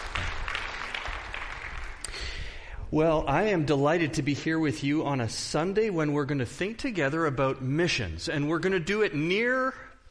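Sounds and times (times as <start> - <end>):
audience applause: 0.0 - 2.1
speech: 2.9 - 9.9.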